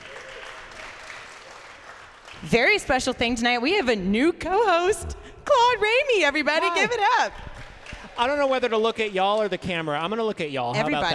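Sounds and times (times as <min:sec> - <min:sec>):
audience applause: 0:00.0 - 0:02.8, 0:06.9 - 0:09.6
speech: 0:02.4 - 0:07.5, 0:08.2 - 0:11.1.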